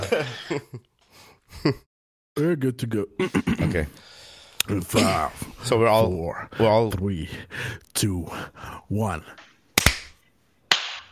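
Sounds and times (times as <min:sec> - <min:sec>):
speech: 0:00.2 - 0:00.9, 0:01.5 - 0:01.8, 0:02.4 - 0:04.1, 0:04.7 - 0:09.5
single hand clap for sync: 0:09.8 - 0:11.1.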